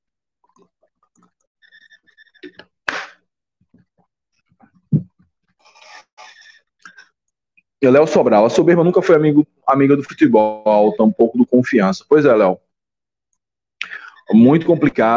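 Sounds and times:
sipping water from a glass: 0.4 - 3.2
speech: 7.8 - 12.6, 14.3 - 15.1.

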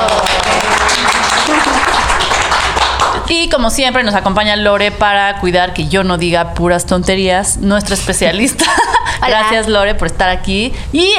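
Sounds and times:
laughter: 0.0 - 2.4
studio audience applause: 0.0 - 3.2
speech: 3.4 - 11.1.

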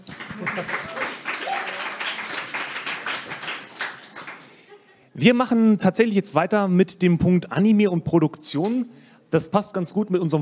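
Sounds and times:
audience applause: 0.0 - 4.7
speech: 0.4 - 0.9, 5.2 - 10.4.

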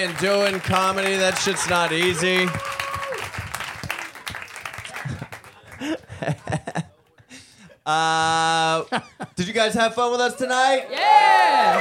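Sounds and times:
speech: 0.0 - 2.8, 7.9 - 11.8
audience applause: 0.0 - 6.4, 10.8 - 11.8
laughter: 1.1 - 2.5, 4.8 - 7.6.

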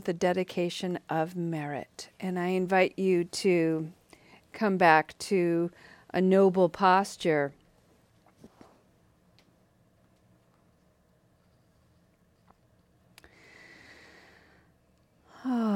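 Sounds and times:
speech: 0.0 - 7.6, 15.4 - 15.7
deep breath drawn as a guided meditation practice closes: 13.2 - 15.5.

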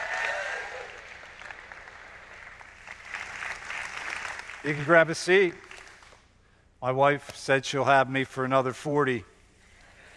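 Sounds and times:
church congregation applauding to welcome a speaker at a morning service: 0.0 - 6.2
speech: 4.6 - 5.7, 6.8 - 9.3.

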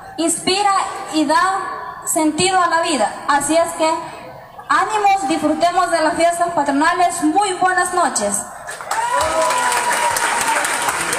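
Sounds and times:
speech: 0.2 - 4.1, 4.7 - 8.5
applause: 8.7 - 11.1.

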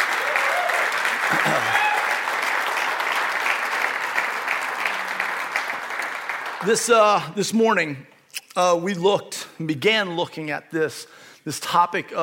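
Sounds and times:
crowd clapping: 0.0 - 7.3
speech: 6.6 - 12.2.

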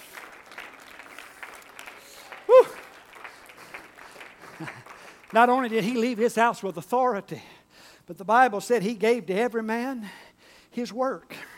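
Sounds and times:
audience clapping: 0.0 - 6.6
speech: 4.6 - 7.5, 8.1 - 11.4.

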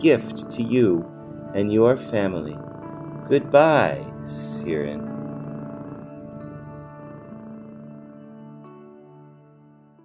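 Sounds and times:
speech: 0.0 - 2.7, 3.3 - 5.3
roaring big cat sound effect: 0.0 - 8.0.

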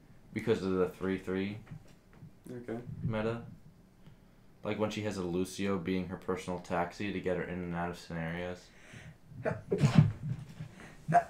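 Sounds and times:
speech: 0.4 - 1.9, 2.5 - 3.6, 4.6 - 8.8, 9.4 - 10.4, 11.1 - 11.2
person sneezing: 9.5 - 10.3.

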